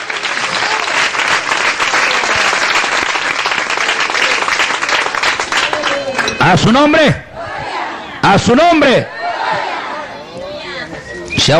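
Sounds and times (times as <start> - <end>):
audience applause: 0.0 - 6.6
speech: 6.4 - 7.3, 8.3 - 9.2.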